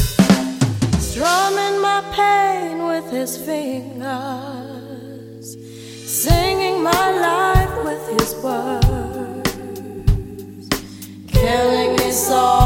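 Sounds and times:
70s classic music at 95 bpm: 0:00.2 - 0:12.6.

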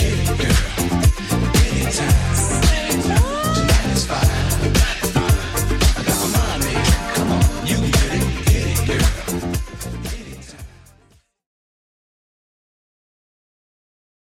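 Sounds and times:
1970s style drum loop: 0:00.0 - 0:10.6.

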